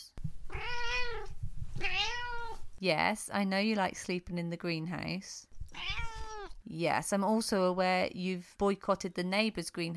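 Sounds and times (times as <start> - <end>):
cat meowing: 0.5 - 2.6, 5.7 - 6.6
speech: 2.8 - 5.5, 6.7 - 9.9.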